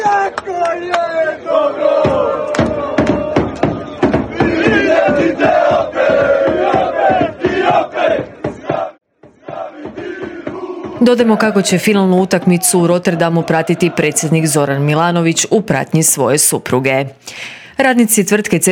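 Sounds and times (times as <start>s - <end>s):
crowd of Croatian football fans cheering and chanting in Rotterdam: 0.0s - 15.1s
sharp claps and bangs from football fans: 2.0s - 11.3s
speech: 11.0s - 18.6s.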